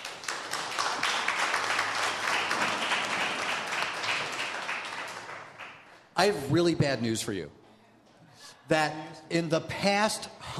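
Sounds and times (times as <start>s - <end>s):
people clapping hands: 0.0s - 6.1s
speech: 6.2s - 7.6s, 8.7s - 10.5s.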